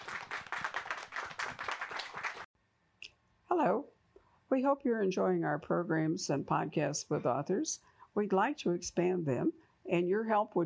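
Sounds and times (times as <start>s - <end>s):
audience applause: 0.0s - 2.5s
speech: 3.6s - 3.8s, 4.5s - 10.6s.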